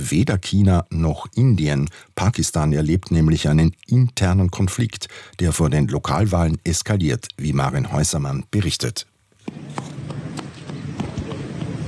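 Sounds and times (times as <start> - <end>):
speech: 0.0 - 9.9
small boy's running footsteps across a square in Muzaffarabad Kashmir: 9.4 - 11.8.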